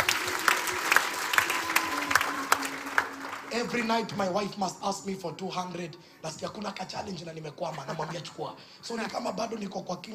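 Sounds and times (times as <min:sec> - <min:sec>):
audience clapping: 0:00.0 - 0:04.3
speech: 0:03.6 - 0:10.1.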